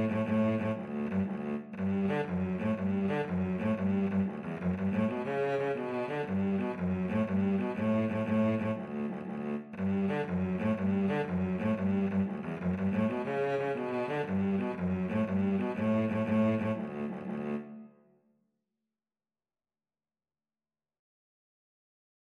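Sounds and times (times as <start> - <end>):
cello duet playing Irish jig medley: 0.0 - 17.8.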